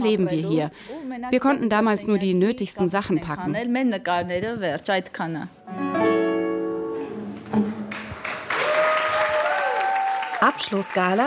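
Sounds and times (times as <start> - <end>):
speech: 0.0 - 6.1, 10.4 - 11.2
applause: 7.8 - 11.2.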